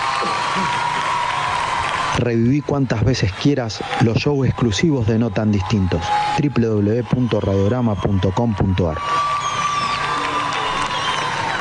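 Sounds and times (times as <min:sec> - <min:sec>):
audience cheering and applauding: 0:00.0 - 0:11.5
speech: 0:00.6 - 0:00.9, 0:02.2 - 0:09.3.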